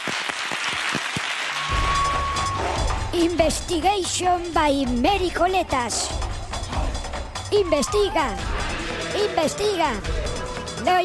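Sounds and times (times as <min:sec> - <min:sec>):
audience applause: 0:00.0 - 0:03.1
speech: 0:03.2 - 0:06.3, 0:07.5 - 0:11.0.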